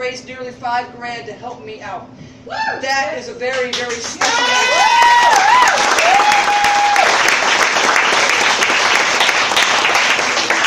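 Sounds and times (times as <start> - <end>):
speech: 0.0 - 6.7
audience applause: 4.0 - 10.6.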